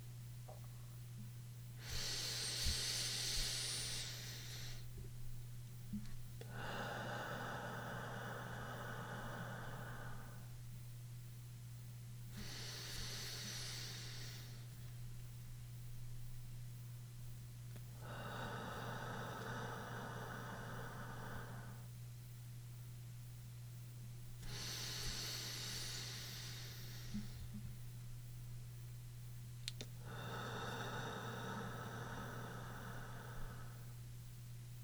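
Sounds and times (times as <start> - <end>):
steady low hum: 0.0 - 34.8
slow guided breathing with long exhalations: 1.8 - 5.0, 5.9 - 10.7, 12.3 - 14.9, 18.0 - 22.0, 24.4 - 27.7, 30.0 - 34.0.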